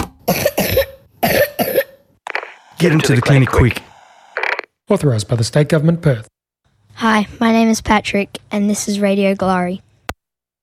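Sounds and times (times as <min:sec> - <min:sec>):
harsh phlegmy wet coughing from lung sickness: 0:00.2 - 0:02.0
speech: 0:02.8 - 0:03.9, 0:04.9 - 0:06.3, 0:07.0 - 0:09.9.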